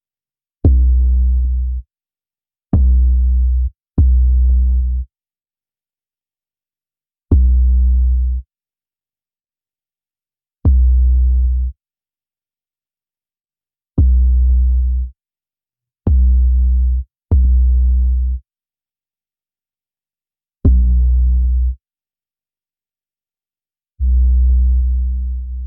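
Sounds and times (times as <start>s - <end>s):
bass: 0.6s - 1.9s, 2.7s - 5.1s, 7.3s - 8.5s, 10.6s - 11.8s, 14.0s - 15.2s, 16.1s - 18.5s, 20.6s - 21.8s, 24.0s - 25.6s.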